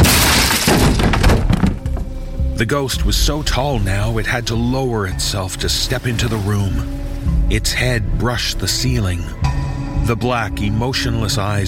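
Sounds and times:
door splintering and breaking off hinges, crashing down: 0.0s - 2.2s
clattering debris: 0.0s - 2.4s
heavy thuds: 0.0s - 2.4s
speech: 2.6s - 11.6s.

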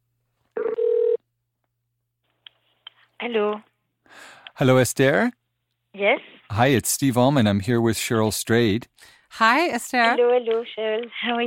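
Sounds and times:
outgoing phone call ringing tone: 0.6s - 1.2s
speech: 3.2s - 5.4s, 6.0s - 11.4s.

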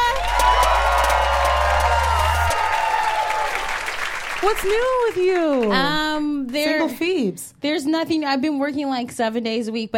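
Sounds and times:
large crowd cheering and applauding: 0.0s - 6.7s
speech: 4.4s - 9.9s.

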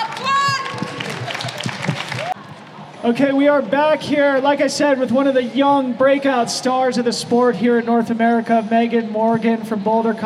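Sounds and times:
audience applause: 0.0s - 2.4s
speech: 3.0s - 10.2s.

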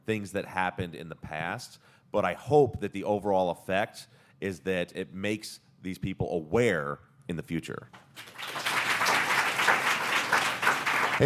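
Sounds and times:
speech: 0.0s - 8.6s
audience applause after a talk: 8.2s - 11.2s.

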